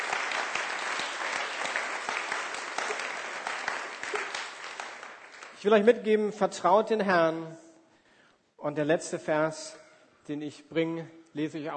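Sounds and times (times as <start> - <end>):
audience clapping: 0.0 - 5.9
speech: 5.6 - 7.6, 8.6 - 11.7.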